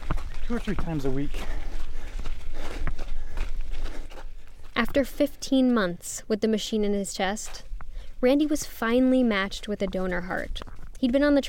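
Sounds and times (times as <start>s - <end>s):
running footsteps on a desert path in Arizona: 0.0s - 5.9s, 6.9s - 11.4s
speech: 0.5s - 1.6s, 5.0s - 11.4s.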